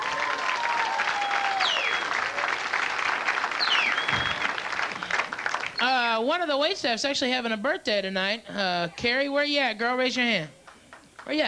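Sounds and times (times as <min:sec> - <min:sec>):
audience applause: 0:00.0 - 0:05.8
speech: 0:06.2 - 0:10.6, 0:11.2 - 0:11.4.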